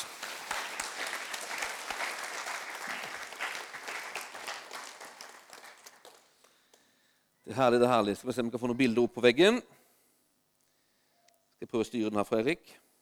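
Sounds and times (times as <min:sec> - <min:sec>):
crowd applauding: 0:00.0 - 0:06.6
speech: 0:07.5 - 0:09.8, 0:11.7 - 0:12.8.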